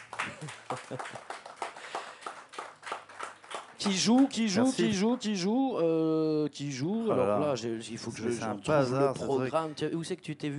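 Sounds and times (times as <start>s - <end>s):
audience applause: 0.0s - 4.8s
speech: 3.8s - 10.5s.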